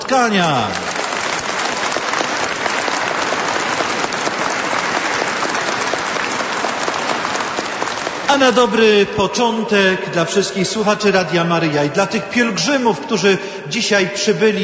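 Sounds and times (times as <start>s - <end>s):
crowd applauding: 0.0s - 9.0s
speech: 0.1s - 0.8s, 8.3s - 14.6s.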